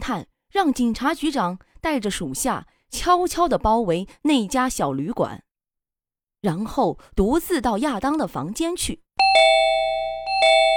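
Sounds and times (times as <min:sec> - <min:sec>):
speech: 0:00.0 - 0:05.4, 0:06.4 - 0:09.6
doorbell ringing: 0:09.2 - 0:10.7.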